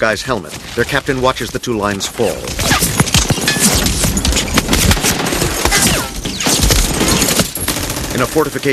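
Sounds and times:
speech: 0:00.0 - 0:03.0, 0:08.2 - 0:08.7
machine-gun fire from a fortification raking a landing craft: 0:02.7 - 0:08.7.

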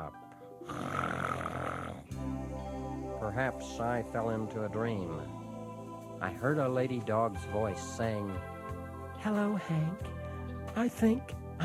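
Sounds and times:
speech: 0:00.0 - 0:00.9, 0:03.2 - 0:05.4, 0:06.2 - 0:08.5, 0:09.2 - 0:10.2, 0:10.8 - 0:11.6
voice imitating a raspy snore: 0:00.6 - 0:02.2.

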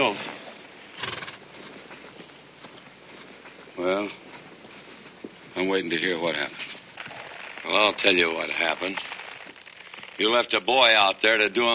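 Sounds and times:
horse galloping: 0:00.4 - 0:10.6
horse whinnying: 0:01.0 - 0:01.4
speech: 0:03.8 - 0:04.2, 0:05.6 - 0:06.8, 0:07.7 - 0:09.1, 0:10.2 - 0:11.7.

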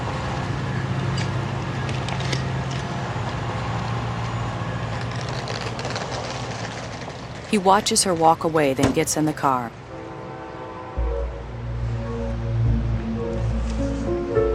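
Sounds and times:
train pulling away: 0:00.0 - 0:14.5
speech: 0:07.5 - 0:09.8
low droning hum: 0:10.9 - 0:14.5.

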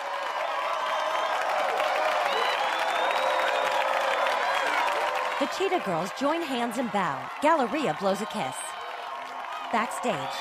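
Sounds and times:
crowd clapping: 0:00.0 - 0:10.3
speech: 0:05.4 - 0:08.6, 0:09.7 - 0:10.3.

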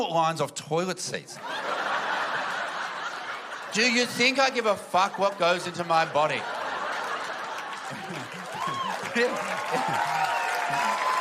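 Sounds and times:
speech: 0:00.0 - 0:01.7, 0:03.7 - 0:06.6, 0:09.2 - 0:11.1
laughter: 0:01.4 - 0:11.1
group applauding: 0:06.4 - 0:11.1.

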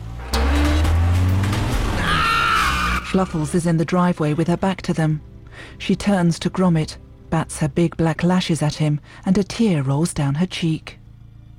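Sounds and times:
tire squeal: 0:00.0 - 0:03.4
van engine revving while racing out of a garage: 0:00.0 - 0:11.5
speech: 0:03.1 - 0:11.0.

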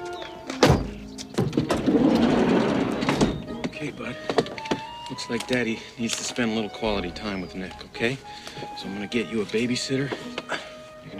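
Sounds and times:
van side door opening: 0:00.5 - 0:05.5
speech: 0:05.2 - 0:10.5.

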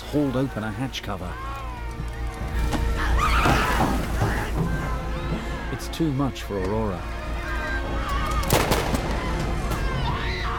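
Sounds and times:
dense noisy background: 0:00.0 - 0:10.5
speech: 0:00.1 - 0:01.5, 0:03.4 - 0:04.0, 0:05.8 - 0:07.2
submarine crew gunfire at people leaping into icy water: 0:08.4 - 0:09.3.

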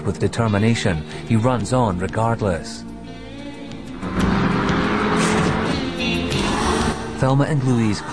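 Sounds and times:
speech: 0:00.0 - 0:02.9, 0:07.2 - 0:08.1
car engine accelerating: 0:03.7 - 0:07.3.

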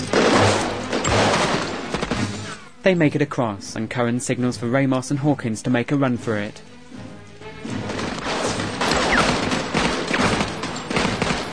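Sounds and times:
gunfire during a street battle: 0:00.0 - 0:02.6, 0:07.8 - 0:11.5
speech: 0:02.8 - 0:06.7.

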